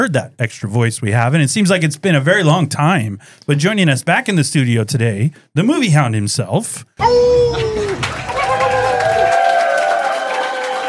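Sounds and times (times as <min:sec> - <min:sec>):
speech: 0:00.0 - 0:08.2
crowd whooping: 0:07.0 - 0:10.8
studio audience applause: 0:07.8 - 0:10.8.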